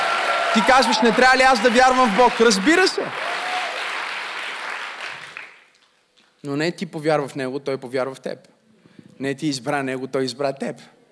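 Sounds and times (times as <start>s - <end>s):
church congregation applauding during a sermon: 0.0s - 5.8s
speech: 0.6s - 3.2s, 6.4s - 8.5s, 9.2s - 11.0s.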